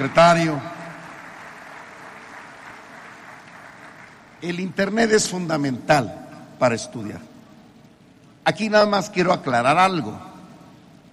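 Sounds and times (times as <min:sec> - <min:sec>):
speech: 0:00.0 - 0:00.7, 0:04.4 - 0:07.3, 0:08.4 - 0:10.3
applause: 0:00.0 - 0:04.6.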